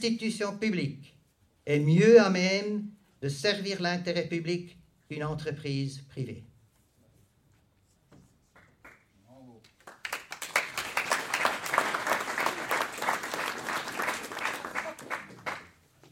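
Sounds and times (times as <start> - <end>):
speech: 0.0 - 6.5
audience applause: 9.8 - 15.8.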